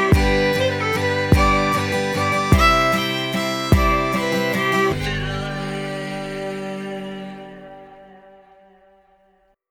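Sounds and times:
fiddle playing a jig variation: 0:00.0 - 0:07.1.

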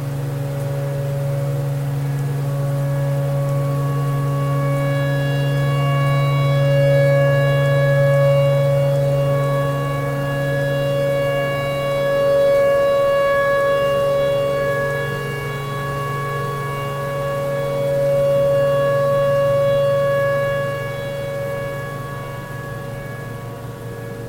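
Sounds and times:
tornado siren: 0:00.0 - 0:24.2.

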